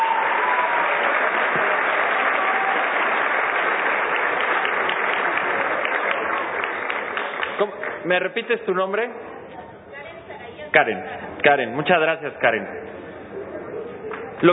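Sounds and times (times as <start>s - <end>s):
audience applause: 0.0s - 8.0s
speech: 7.6s - 9.3s, 10.8s - 13.0s, 14.4s - 14.5s.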